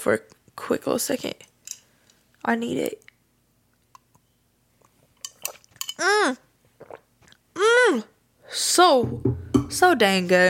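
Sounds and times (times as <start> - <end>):
speech: 0.0 - 1.5, 2.4 - 3.0, 6.0 - 6.4, 7.9 - 10.4
person sipping tea from a cup: 6.8 - 7.4.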